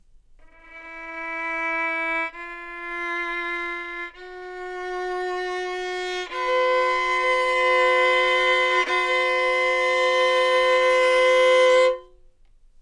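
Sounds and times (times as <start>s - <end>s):
violin: 0.4s - 12.2s.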